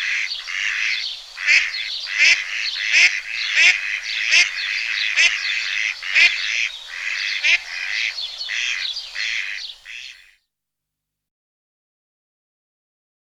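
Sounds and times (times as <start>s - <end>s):
mallard calls and quacks: 0.0s - 10.4s.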